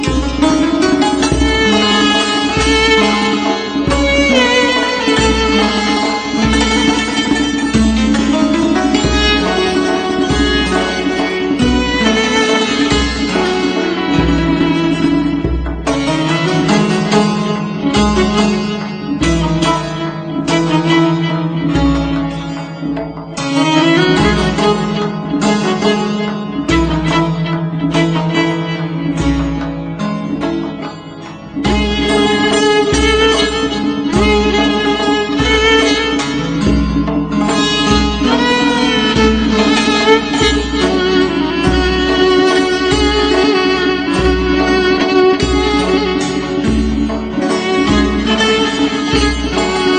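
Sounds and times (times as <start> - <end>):
violin: 0.0 - 49.9.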